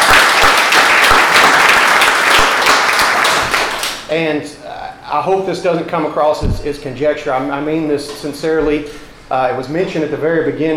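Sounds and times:
audience applause: 0:00.0 - 0:04.0
speech: 0:04.1 - 0:10.7.

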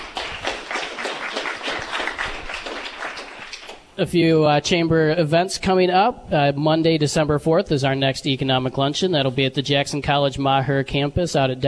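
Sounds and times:
audience applause: 0:00.0 - 0:03.8
speech: 0:04.0 - 0:11.6.

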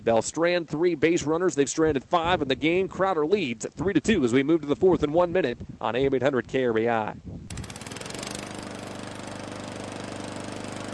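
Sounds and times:
speech: 0:00.0 - 0:07.4
lawn mower engine running: 0:07.5 - 0:10.9.

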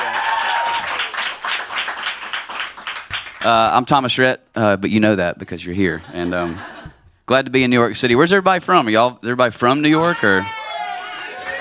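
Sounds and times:
audience applause: 0:00.0 - 0:03.5, 0:10.7 - 0:11.5
speech: 0:03.4 - 0:10.6
laughter: 0:06.0 - 0:07.0.

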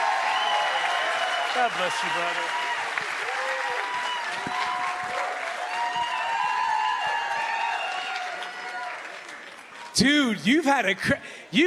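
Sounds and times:
cheers and whoops: 0:00.0 - 0:09.2
crowd applause: 0:00.0 - 0:10.0
speech: 0:01.6 - 0:02.6, 0:10.0 - 0:11.6.

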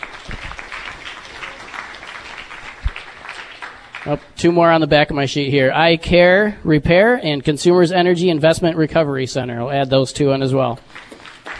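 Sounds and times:
audience applause for new members: 0:00.0 - 0:04.4, 0:10.9 - 0:11.5
speech: 0:04.0 - 0:11.0.

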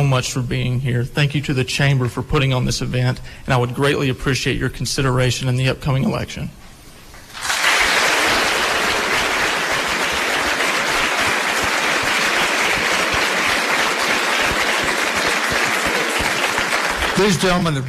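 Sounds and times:
speech: 0:00.0 - 0:06.6, 0:17.2 - 0:17.8
audience applause: 0:07.3 - 0:17.8.

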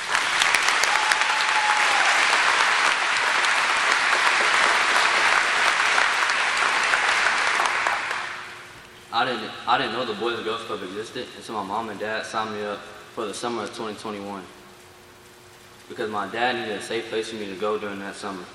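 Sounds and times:
audience applause: 0:00.0 - 0:08.6
speech: 0:09.2 - 0:14.6, 0:15.9 - 0:18.5.

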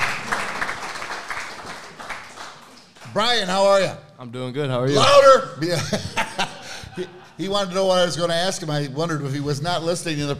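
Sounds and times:
audience applause: 0:00.0 - 0:03.3
speech: 0:03.1 - 0:06.4, 0:07.0 - 0:10.3
laughter: 0:05.6 - 0:07.8.

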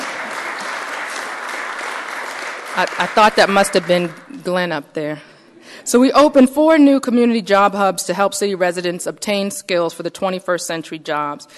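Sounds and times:
audience applause during a civic speech: 0:00.0 - 0:04.4
speech: 0:02.8 - 0:11.5.

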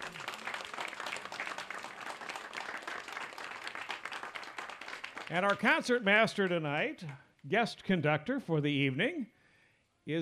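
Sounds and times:
crowd applauding: 0:00.0 - 0:07.2
speech: 0:05.3 - 0:09.4, 0:10.1 - 0:10.2.

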